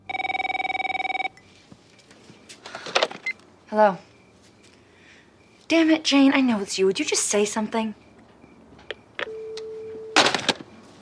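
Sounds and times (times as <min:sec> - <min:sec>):
telephone ringing: 0:00.0 - 0:01.5, 0:08.8 - 0:10.5
speech: 0:03.7 - 0:04.1, 0:05.7 - 0:08.0.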